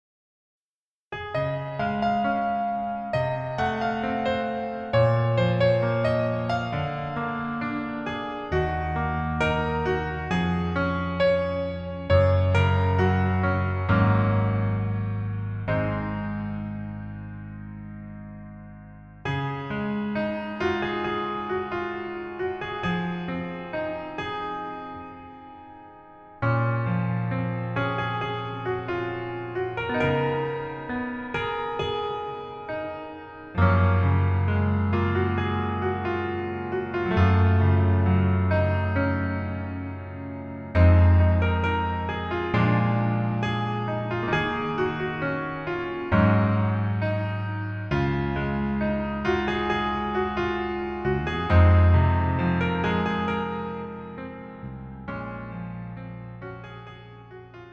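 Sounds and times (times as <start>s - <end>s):
piano melody backing track in male key: 1.1s - 57.7s.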